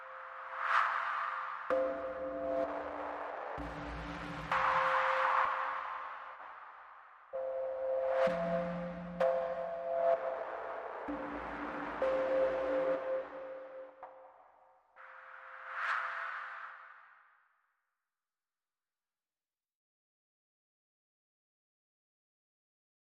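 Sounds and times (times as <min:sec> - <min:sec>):
synthesizers: 0:00.0 - 0:14.5.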